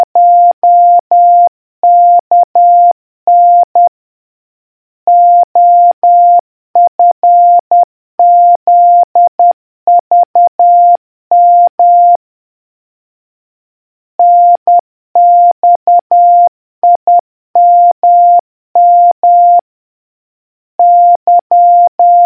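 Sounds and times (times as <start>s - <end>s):
morse code beeps: 0.2s - 3.9s, 5.1s - 7.6s, 8.2s - 12.2s, 14.2s - 19.6s, 20.8s - 22.2s.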